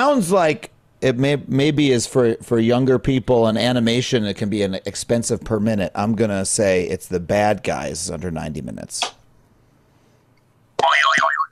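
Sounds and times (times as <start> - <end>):
speech: 0.0 - 9.2
springy door-stopper boing sound effect: 10.8 - 11.5.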